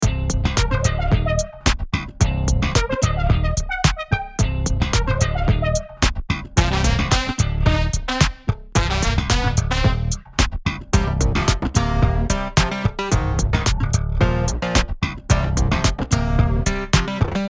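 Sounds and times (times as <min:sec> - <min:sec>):
rock music: 0:00.0 - 0:17.5.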